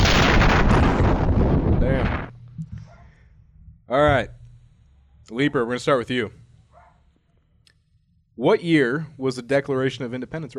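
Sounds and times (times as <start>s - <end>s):
video game nuke explosion: 0.0s - 2.4s
speech: 3.9s - 4.4s, 5.3s - 6.4s, 8.4s - 10.5s.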